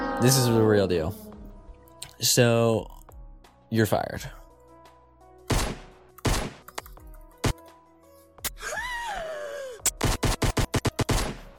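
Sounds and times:
speech: 0.2s - 1.3s, 2.2s - 3.0s, 3.7s - 4.4s
gunshot sound effect: 5.5s - 6.7s, 10.0s - 11.5s.

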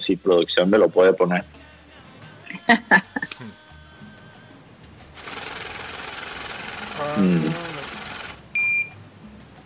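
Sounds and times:
speech: 0.0s - 1.6s, 2.6s - 3.6s, 7.0s - 7.8s
laughter: 2.5s - 3.5s
money-printing machine rattling mechanical whir: 5.2s - 8.4s
short high electronic beep: 8.6s - 9.0s.

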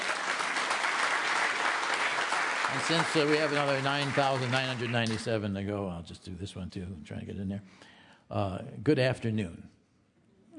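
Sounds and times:
applause: 0.0s - 5.5s
speech: 2.7s - 9.8s.

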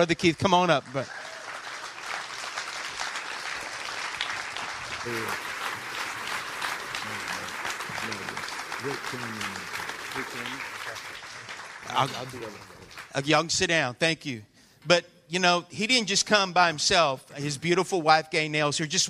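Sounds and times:
speech: 0.0s - 1.2s, 5.0s - 5.5s, 8.8s - 11.0s, 11.8s - 19.0s
audience applauding: 0.0s - 13.4s.

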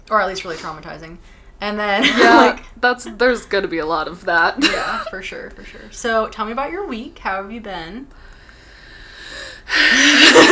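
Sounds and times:
speech: 0.1s - 8.3s, 9.6s - 10.4s
deep sharp breath drawn in: 8.2s - 10.2s.

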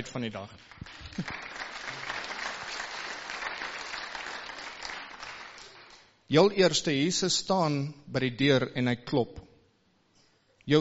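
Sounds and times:
speech: 0.0s - 1.5s, 6.3s - 9.5s
audience applause: 0.6s - 6.0s.

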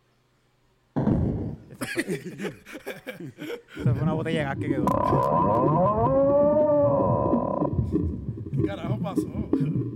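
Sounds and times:
laughter: 1.7s - 3.8s
speech: 1.9s - 6.7s, 7.9s - 9.9s
whale moaning call: 4.8s - 7.9s.

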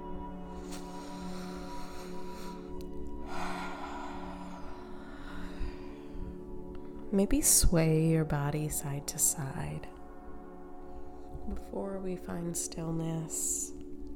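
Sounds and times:
steady low drone: 0.0s - 14.1s
deep cleansing breath during a guided meditation: 0.5s - 7.1s
speech: 7.1s - 10.0s, 11.5s - 13.8s.

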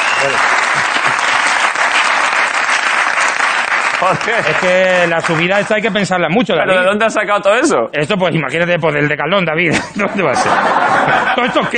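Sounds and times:
audience applause: 0.0s - 5.8s
speech: 0.2s - 0.6s, 4.0s - 11.7s
laughter: 0.6s - 1.5s, 9.7s - 11.7s.

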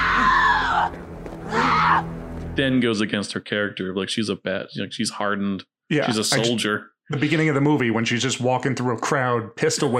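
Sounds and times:
woman screaming in fear: 0.0s - 2.1s
speech: 2.6s - 9.9s.

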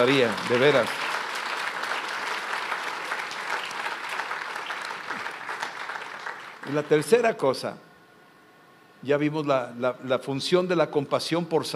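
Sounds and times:
speech: 0.0s - 1.0s, 6.7s - 7.9s, 9.0s - 11.7s
audience applause: 0.0s - 7.2s.

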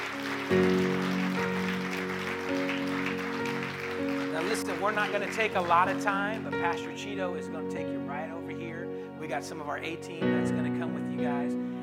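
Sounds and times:
audience praise clapping: 0.0s - 6.7s
speech: 0.5s - 0.9s, 4.6s - 8.6s, 9.2s - 11.7s.

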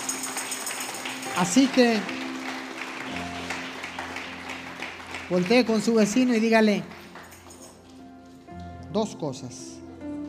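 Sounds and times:
audience applauding: 0.0s - 7.6s
speech: 1.4s - 2.2s, 5.3s - 7.0s, 9.0s - 9.7s.

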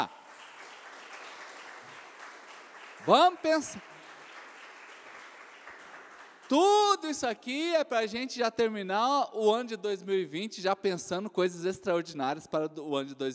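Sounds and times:
audience applauding: 0.0s - 7.2s
speech: 3.0s - 3.9s, 6.5s - 13.3s.

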